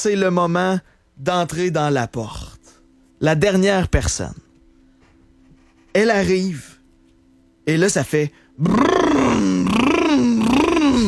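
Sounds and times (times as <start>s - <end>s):
speech: 0.0s - 2.5s, 3.2s - 4.4s, 6.0s - 6.7s, 7.7s - 9.8s
voice imitating a Lamborghini Urus SUV engine rumble: 8.6s - 11.0s.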